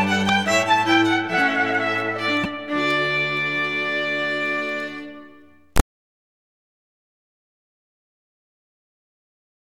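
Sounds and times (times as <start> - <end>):
string rondeau: 0.0 - 5.8.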